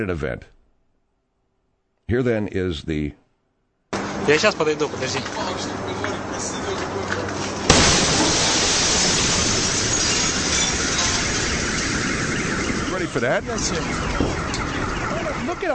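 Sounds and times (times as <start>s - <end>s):
speech: 0.0s - 0.6s, 2.1s - 3.2s, 4.2s - 5.8s, 13.2s - 14.4s, 15.5s - 15.7s
sustained steady roar of rushing noise: 4.0s - 15.6s
explosion shockwave smashing windows and doors: 7.7s - 15.5s
clattering glass: 7.8s - 11.5s.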